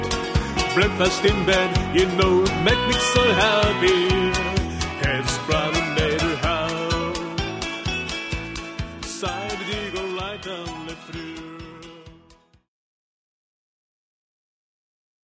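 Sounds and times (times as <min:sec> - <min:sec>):
love vocal singing: 0:00.3 - 0:07.8, 0:09.0 - 0:12.2.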